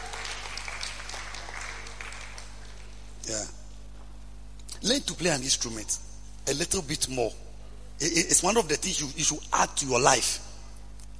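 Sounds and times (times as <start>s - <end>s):
audience clapping for a guitar player: 0.0s - 3.2s
speech: 3.2s - 3.6s, 4.8s - 7.4s, 8.0s - 10.4s.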